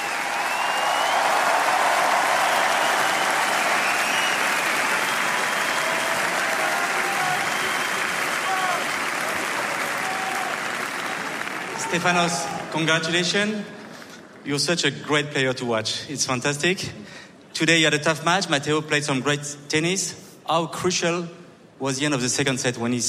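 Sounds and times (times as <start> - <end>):
crowd ovation for tennis player: 0.0 - 13.2
speech: 11.9 - 13.8, 14.4 - 23.0.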